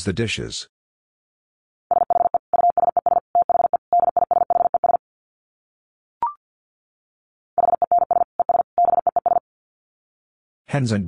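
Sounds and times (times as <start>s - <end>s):
Morse code tones at 50 wpm: 1.9s - 5.0s, 7.6s - 9.4s.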